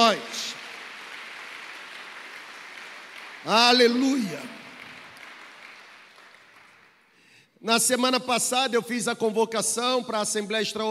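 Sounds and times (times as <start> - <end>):
audience applauding: 0.0 - 7.2
speech: 3.4 - 4.6, 7.6 - 10.9.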